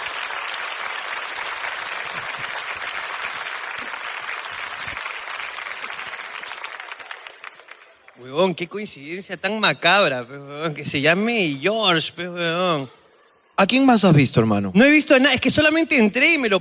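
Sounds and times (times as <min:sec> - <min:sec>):
audience applause: 0:00.0 - 0:08.2
speech: 0:08.2 - 0:13.0, 0:13.6 - 0:16.6.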